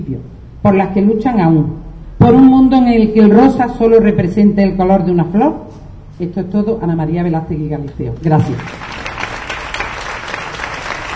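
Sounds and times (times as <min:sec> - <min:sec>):
speech: 0:00.0 - 0:08.9
audience applause after a manifesto reading: 0:08.6 - 0:11.1.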